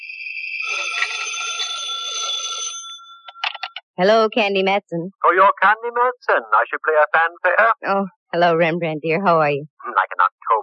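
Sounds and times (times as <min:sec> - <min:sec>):
telephone ringing with trilling bell tone: 0:00.3 - 0:03.8
speech: 0:00.6 - 0:01.3, 0:04.0 - 0:10.6.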